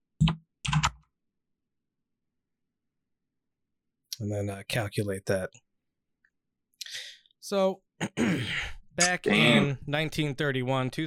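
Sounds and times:
typing a number on a computer keyboard: 0:00.2 - 0:01.0
speech: 0:04.2 - 0:05.6, 0:07.5 - 0:11.0.

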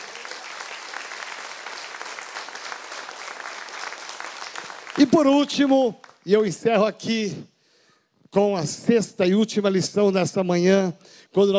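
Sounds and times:
audience applause: 0:00.0 - 0:06.2
speech: 0:05.0 - 0:07.5, 0:08.3 - 0:11.5.

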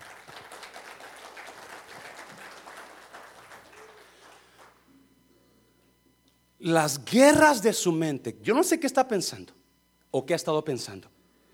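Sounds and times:
audience applause: 0:00.0 - 0:04.8
speech: 0:06.6 - 0:11.2.

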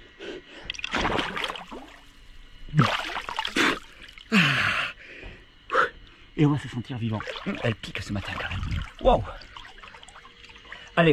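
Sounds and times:
water splashing as a person dips their face into cold water: 0:00.7 - 0:02.1, 0:02.7 - 0:04.3, 0:07.0 - 0:11.1
speech: 0:06.4 - 0:09.5, 0:11.0 - 0:11.1.

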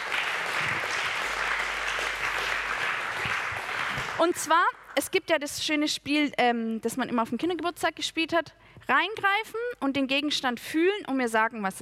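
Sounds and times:
crowd applauding: 0:00.0 - 0:05.0
speech: 0:04.2 - 0:11.7.

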